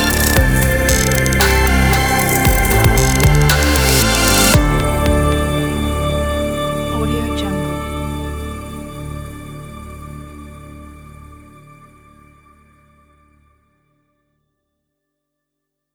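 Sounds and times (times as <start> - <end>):
chill glitch music: 0.0 - 8.4.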